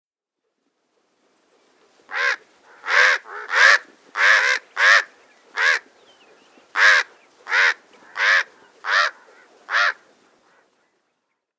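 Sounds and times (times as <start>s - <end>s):
Chihuahuan raven giving harsh croaking caws: 2.1s - 5.9s, 6.7s - 10.7s.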